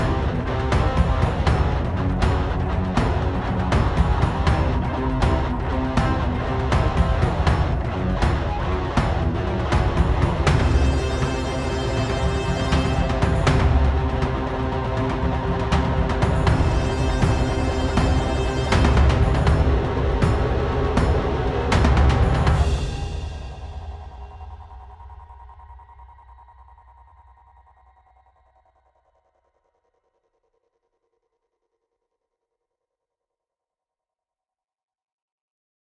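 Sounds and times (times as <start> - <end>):
heavy combat music: 0.0 - 24.0.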